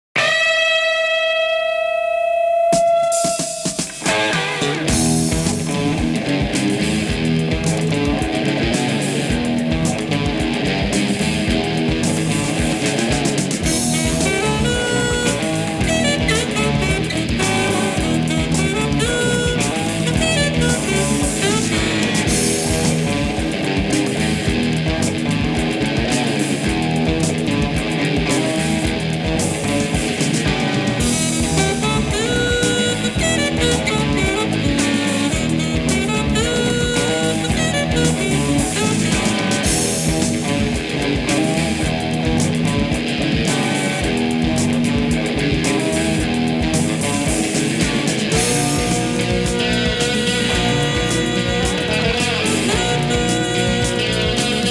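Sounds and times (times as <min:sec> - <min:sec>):
rock music: 0:00.0 - 0:54.6.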